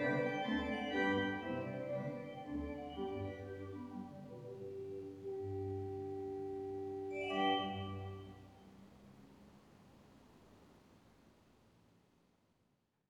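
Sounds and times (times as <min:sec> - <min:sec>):
pipe organ flutes 8 and 2 on choir, great and solo manuals: 0:00.0 - 0:08.6.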